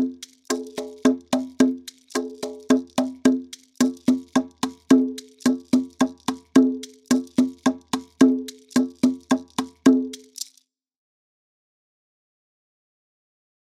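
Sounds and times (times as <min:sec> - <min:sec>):
Latin American music at 109 bpm: 0:00.0 - 0:10.5.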